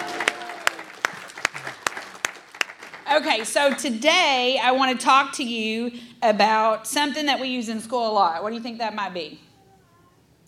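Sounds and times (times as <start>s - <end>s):
audience clapping together in a steady rhythm: 0.0s - 3.9s
speech: 3.2s - 9.4s.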